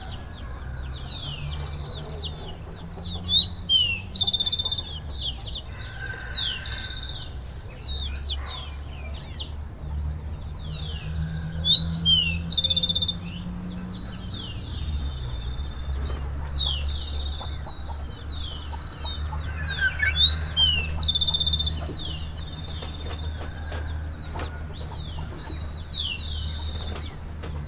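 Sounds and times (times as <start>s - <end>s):
chickens peeping in a chicken coop in Pujilí Ecuador: 0.0s - 27.6s.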